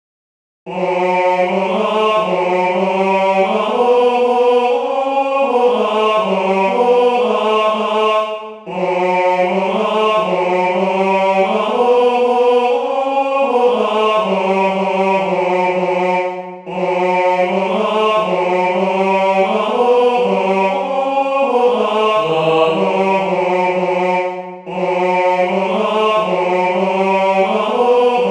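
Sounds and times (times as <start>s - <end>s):
tenor singing: 0.7s - 28.2s.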